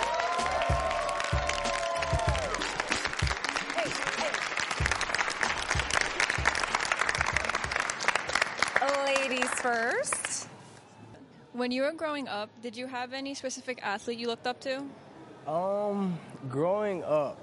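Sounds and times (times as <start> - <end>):
audience applause and cheering: 0.0 - 10.3
speech: 11.6 - 17.4.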